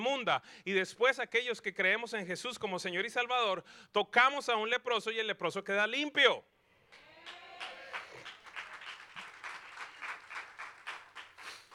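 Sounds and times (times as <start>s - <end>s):
speech: 0.2s - 6.5s
polite quiet audience applause: 6.9s - 11.7s.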